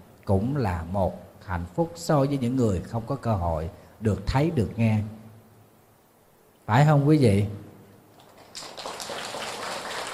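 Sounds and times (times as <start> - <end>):
speech: 0.3 - 5.2, 6.7 - 7.6
audience applause: 8.2 - 10.1.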